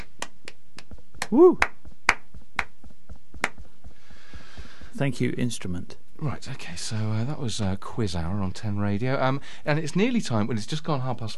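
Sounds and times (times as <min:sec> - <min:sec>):
sparse applause: 0:01.2 - 0:02.2
speech: 0:01.3 - 0:01.7, 0:05.0 - 0:11.3.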